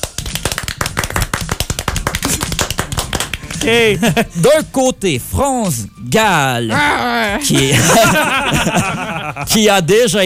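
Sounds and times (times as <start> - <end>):
applause: 0.0 - 3.8
laughter: 3.4 - 4.4, 7.3 - 9.6
speech: 3.6 - 10.2.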